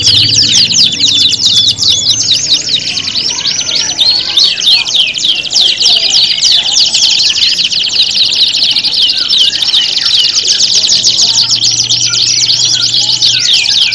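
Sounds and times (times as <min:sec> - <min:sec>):
domestic canary singing with trills, buzzy rolls and sweeping chirps: 0:00.0 - 0:13.9.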